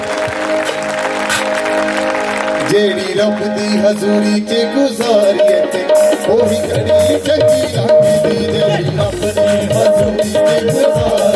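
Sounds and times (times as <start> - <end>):
congregation clapping loudly at a Punjabi-language church service: 0.0 - 4.5
speech: 2.8 - 11.3.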